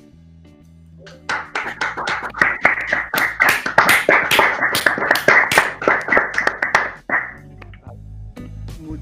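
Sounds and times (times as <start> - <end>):
audience applause: 1.1 - 7.4.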